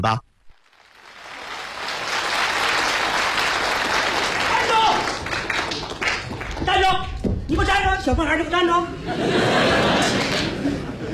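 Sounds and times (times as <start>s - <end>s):
speech: 0.0s - 0.3s, 6.7s - 10.8s
audience applause: 0.6s - 6.9s, 9.4s - 10.8s
laughter: 8.9s - 11.1s.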